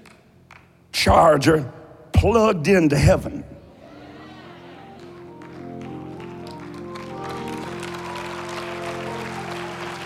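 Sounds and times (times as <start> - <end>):
speech: 1.0 - 3.5
audience clapping: 4.8 - 10.0.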